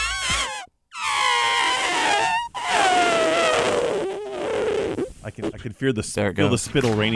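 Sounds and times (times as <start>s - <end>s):
voice imitating a deflating balloon flying around: 0.0s - 5.6s
speech: 5.4s - 7.1s.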